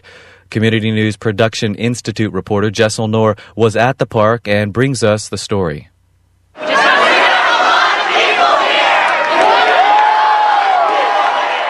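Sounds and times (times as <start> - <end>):
speech: 0.5 - 5.9
crowd of protesters cheering and whooping: 6.6 - 11.6.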